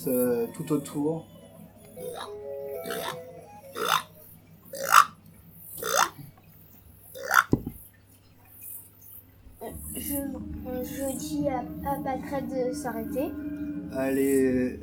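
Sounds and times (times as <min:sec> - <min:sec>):
speech: 0:00.0 - 0:01.4, 0:10.1 - 0:14.8
green frogs croaking by a pond: 0:00.0 - 0:07.9.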